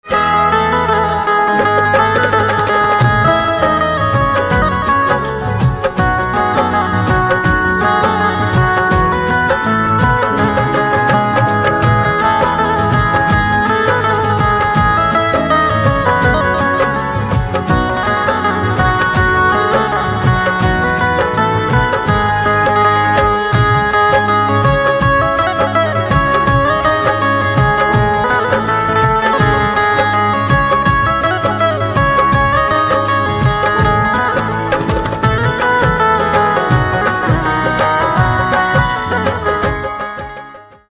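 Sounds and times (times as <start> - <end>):
banjo: 0.0 - 40.9.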